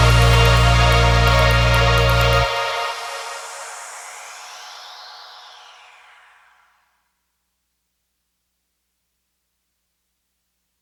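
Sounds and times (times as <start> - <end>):
instrumental music: 0.0 - 4.7.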